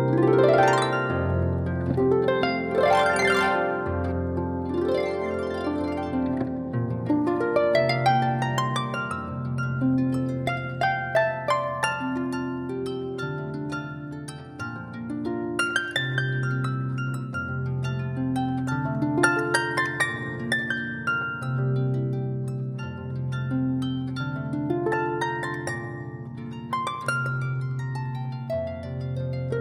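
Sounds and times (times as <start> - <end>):
harp music: 0.0 - 29.5.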